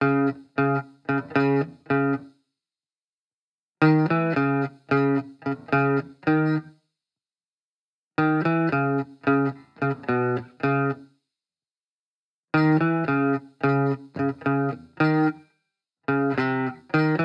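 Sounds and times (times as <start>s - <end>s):
70s guitars playing in C# minor at 110 BPM: 0.0s - 2.3s, 3.8s - 6.7s, 8.2s - 11.0s, 12.6s - 15.4s, 16.1s - 17.2s.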